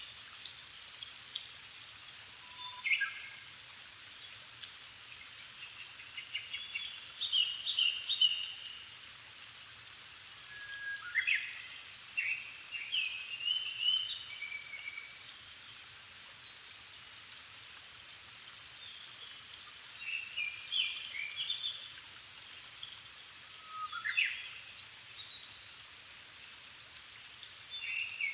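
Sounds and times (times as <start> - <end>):
background hiss: 0.0 - 28.3
Japanese thrush song: 1.9 - 4.4, 5.2 - 8.8, 10.5 - 15.4, 18.8 - 21.9, 22.8 - 25.6, 27.7 - 28.3.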